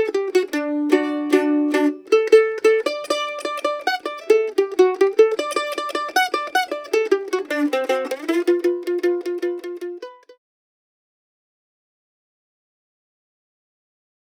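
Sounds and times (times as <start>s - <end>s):
mandolin: 0.0s - 10.4s.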